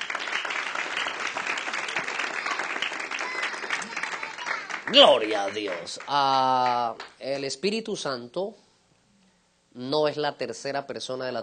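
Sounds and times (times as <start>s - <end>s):
audience applause: 0.0s - 7.0s
speech: 4.9s - 8.6s, 9.8s - 11.4s.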